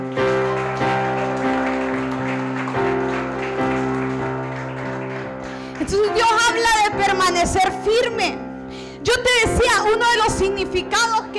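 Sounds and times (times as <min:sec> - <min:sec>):
audience applause: 0:00.0 - 0:06.6
speech: 0:07.4 - 0:08.4, 0:09.0 - 0:11.3.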